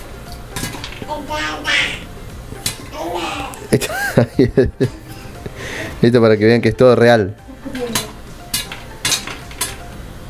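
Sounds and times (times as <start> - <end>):
popcorn kernels popping in a pot: 0.0 - 1.2, 7.7 - 10.0
speech: 1.1 - 2.0, 3.0 - 5.0, 6.0 - 7.8
laughter: 3.7 - 5.1.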